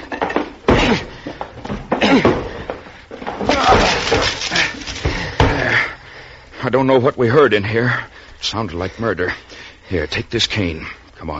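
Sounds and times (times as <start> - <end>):
locked door being broken down: 1.7 - 5.8
speech: 6.7 - 11.3.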